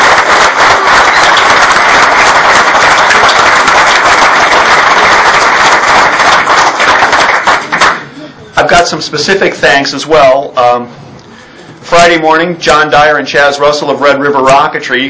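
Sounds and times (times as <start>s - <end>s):
audience round of applause: 0.0s - 8.1s
speech: 8.8s - 11.0s, 12.0s - 15.0s.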